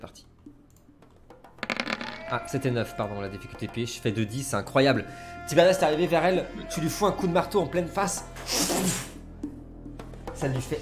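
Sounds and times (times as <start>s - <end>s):
speech: 0.0s - 0.3s, 2.3s - 9.0s, 10.4s - 10.7s
dice rolled on a table: 1.6s - 2.2s.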